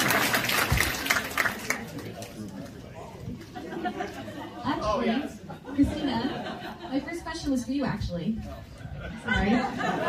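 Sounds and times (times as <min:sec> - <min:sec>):
audience applause: 0:00.0 - 0:02.6
crowd murmur and chatter: 0:00.0 - 0:10.0
laughter: 0:03.0 - 0:07.3, 0:08.4 - 0:10.0
speech: 0:07.0 - 0:10.0.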